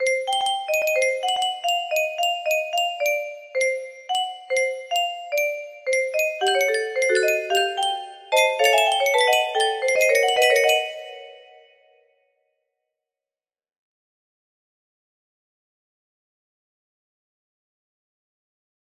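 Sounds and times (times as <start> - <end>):
melody: 0.0 - 11.9.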